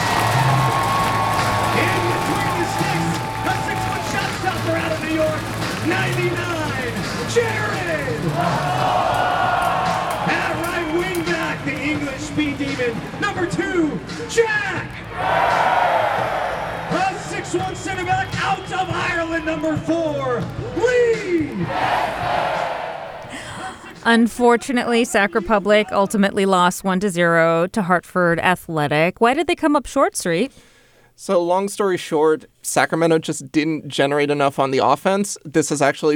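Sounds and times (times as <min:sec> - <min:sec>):
stadium fans roaring players' names: 0:00.0 - 0:23.3
speech: 0:24.0 - 0:36.1.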